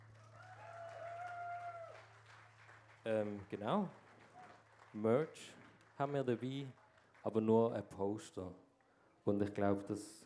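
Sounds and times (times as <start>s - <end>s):
audience applause: 0.0s - 7.4s
speech: 3.0s - 4.0s, 4.9s - 8.6s, 9.2s - 10.2s.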